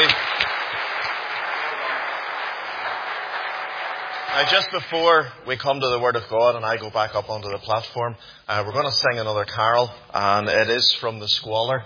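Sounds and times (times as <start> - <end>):
audience applause: 0.0 - 5.8
speech: 4.4 - 11.8.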